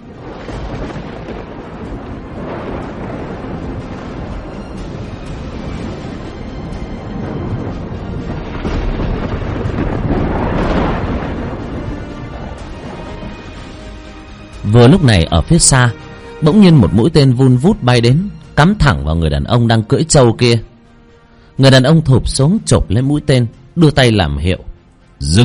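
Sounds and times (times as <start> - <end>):
rumbling thunder: 0.0 - 19.4
gusting storm wind: 0.0 - 25.4
speech: 14.7 - 20.7, 21.6 - 25.4.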